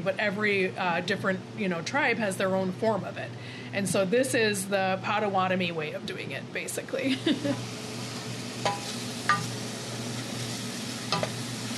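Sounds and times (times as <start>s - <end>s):
speech: 0.0s - 7.8s
onions sautéing on a stove for Potawatomi soup: 7.2s - 11.7s.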